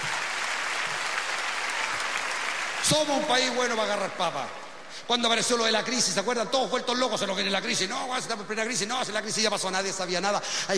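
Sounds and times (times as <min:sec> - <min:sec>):
crowd applauding rescued workers: 0:00.0 - 0:03.5
speech: 0:02.8 - 0:10.7.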